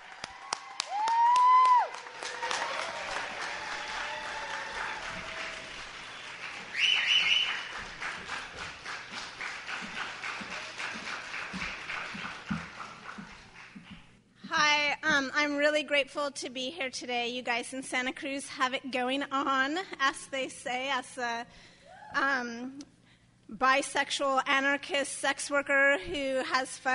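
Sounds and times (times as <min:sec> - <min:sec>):
audience in Santa Cruz applauding to welcome a speaker: 0:00.0 - 0:13.9
speech: 0:15.5 - 0:22.9, 0:23.6 - 0:26.9.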